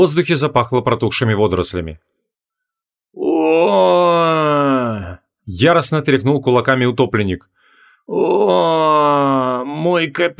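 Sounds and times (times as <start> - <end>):
speech: 0.0 - 2.1, 3.1 - 4.4, 5.5 - 10.3
man groaning loudly: 3.2 - 5.2, 8.1 - 9.8.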